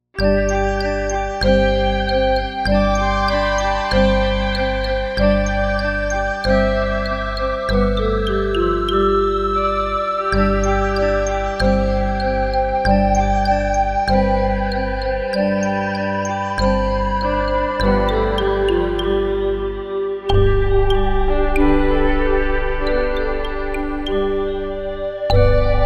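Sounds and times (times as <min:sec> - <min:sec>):
playful ambient music: 0:00.1 - 0:25.8.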